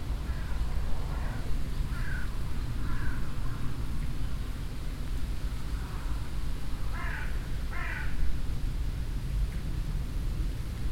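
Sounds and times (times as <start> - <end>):
wind rushing through leaves: 0.0 - 10.9
crow cawing: 1.2 - 3.6, 6.9 - 8.2.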